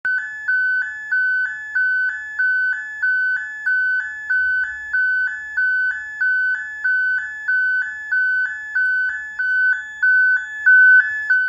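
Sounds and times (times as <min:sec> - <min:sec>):
high power siren: 0:00.1 - 0:11.4.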